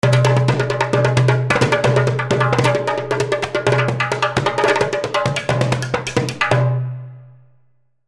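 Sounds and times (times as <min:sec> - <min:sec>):
darbuka drumming: 0:00.0 - 0:07.2.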